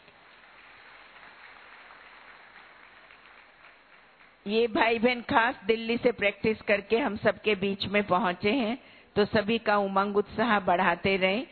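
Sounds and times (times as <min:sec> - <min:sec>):
audience applause: 0:00.0 - 0:04.5
speech: 0:04.4 - 0:11.5.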